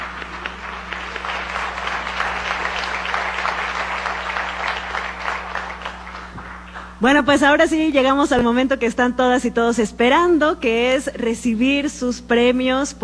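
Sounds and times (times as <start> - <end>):
audience applause: 0.0 - 7.0
speech: 7.0 - 13.0.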